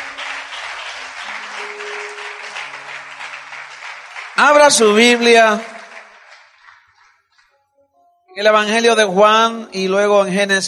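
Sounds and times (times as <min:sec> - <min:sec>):
audience applause: 0:00.0 - 0:07.5
speech: 0:04.4 - 0:05.7, 0:08.4 - 0:10.6.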